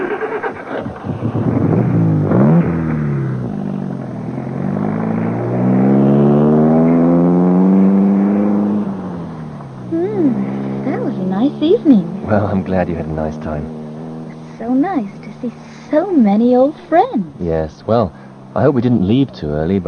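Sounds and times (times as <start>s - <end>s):
car engine pulling away: 0.0s - 19.8s
speech: 12.6s - 13.8s, 14.7s - 19.8s.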